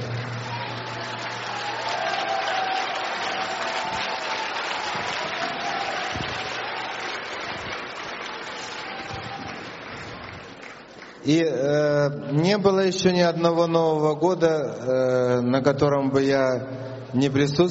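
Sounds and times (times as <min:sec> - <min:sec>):
audience applause: 0:00.0 - 0:11.2
speech: 0:11.2 - 0:17.7.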